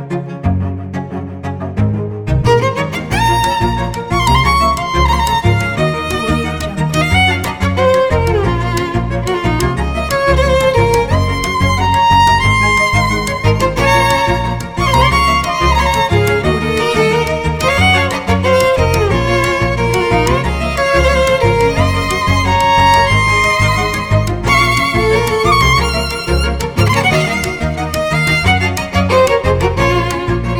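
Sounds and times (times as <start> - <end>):
expressive cellos playing: 0.0 - 30.5.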